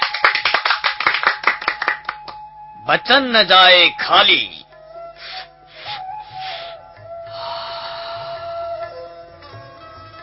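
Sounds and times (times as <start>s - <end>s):
many hands clapping along to a Hindu devotional song: 0.0s - 2.5s
speech: 2.9s - 4.6s.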